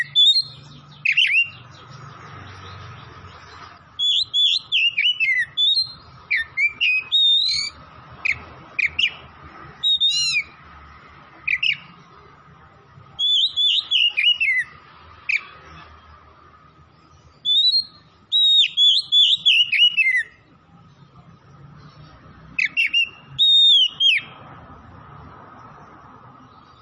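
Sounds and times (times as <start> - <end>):
Oriental magpie-robin singing: 0.0 - 2.8, 3.9 - 10.6, 11.4 - 12.0, 13.2 - 15.5, 17.0 - 20.4, 22.0 - 24.5.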